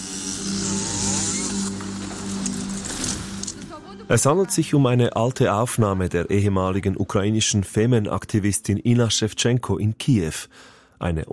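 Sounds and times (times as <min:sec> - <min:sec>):
chainsaw cutting through a large wooden cross: 0:00.0 - 0:03.6
speech: 0:04.1 - 0:11.3.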